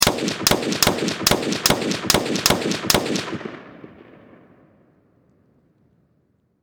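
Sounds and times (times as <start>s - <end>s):
distant M16 machine gun single shots and rapid fire: 0.0s - 4.5s.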